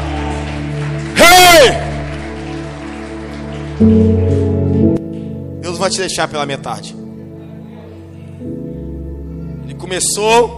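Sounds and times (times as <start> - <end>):
audience applauding: 0.0 - 5.5
speech: 3.8 - 4.8, 5.8 - 7.0, 9.8 - 10.5.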